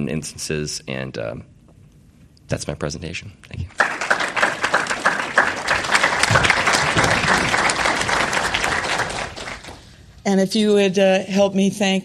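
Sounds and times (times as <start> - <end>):
speech: 0.0 - 1.6, 2.5 - 3.9, 10.3 - 12.0
audience applause: 3.8 - 10.0.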